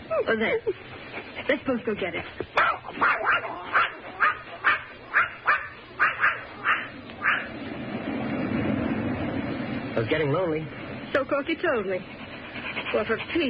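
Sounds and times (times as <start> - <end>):
speech: 0.2 - 3.9, 10.0 - 12.2, 12.9 - 13.4
dog barking: 2.6 - 7.5
low rumbling background: 5.9 - 13.3.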